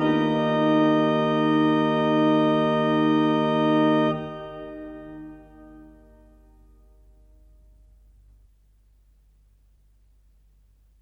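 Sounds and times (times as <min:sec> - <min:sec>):
organ mass music: 0:00.0 - 0:06.5.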